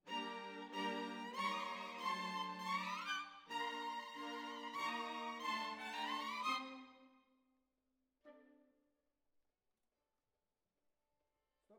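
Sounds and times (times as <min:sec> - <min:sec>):
violins: 0:00.0 - 0:07.1.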